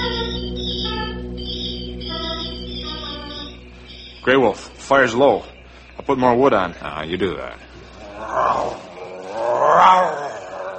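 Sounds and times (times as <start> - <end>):
speech: 4.2 - 5.5, 6.1 - 7.7, 9.7 - 10.2
grizzly bear roaring: 8.0 - 10.7.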